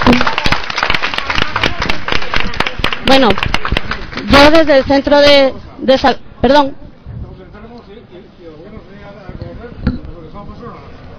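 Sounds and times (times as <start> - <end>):
group clapping: 0.0 - 4.5
speech: 3.1 - 3.5, 4.5 - 6.8.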